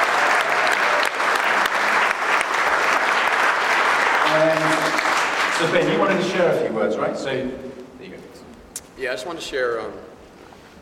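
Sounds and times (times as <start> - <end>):
audience applause: 0.0 - 6.4
speech: 5.6 - 7.8, 9.0 - 10.1.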